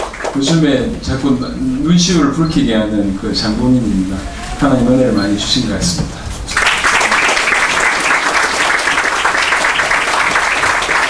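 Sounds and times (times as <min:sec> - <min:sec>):
audience applauding: 0:00.0 - 0:01.0, 0:04.2 - 0:11.0
speech: 0:00.4 - 0:06.2.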